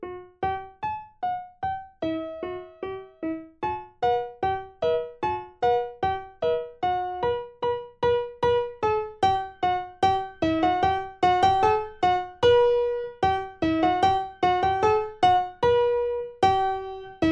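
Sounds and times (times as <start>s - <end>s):
primo part of a four-hand practice piece playback: 0.0s - 17.3s.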